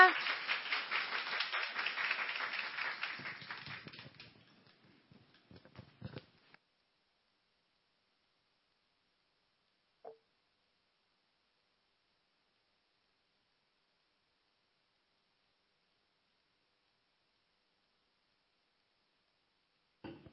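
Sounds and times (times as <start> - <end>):
people clapping in welcome: 0.0 - 4.8.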